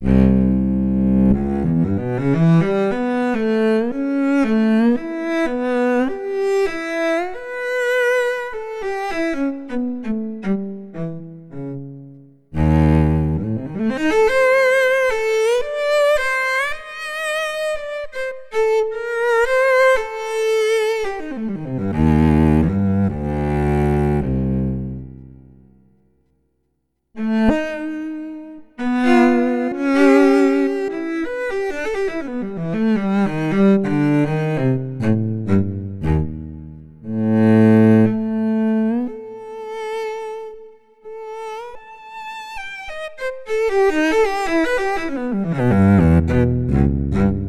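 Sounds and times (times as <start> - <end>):
cello: 0.0 - 25.9, 27.2 - 47.4.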